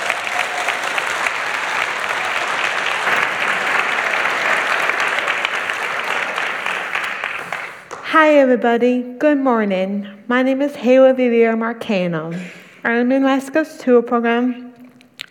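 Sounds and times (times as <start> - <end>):
congregation applause at a Sunday church service: 0.0 - 8.1
speech: 8.2 - 14.7.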